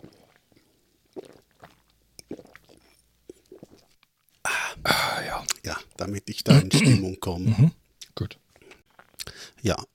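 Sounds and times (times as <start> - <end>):
person sipping a drink: 0.0 - 5.6, 8.6 - 9.5
speech: 4.8 - 8.4, 9.6 - 9.9.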